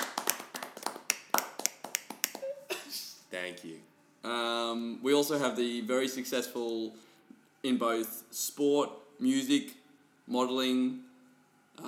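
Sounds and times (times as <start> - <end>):
scattered applause from a small audience: 0.0 - 2.5
speech: 3.3 - 11.1.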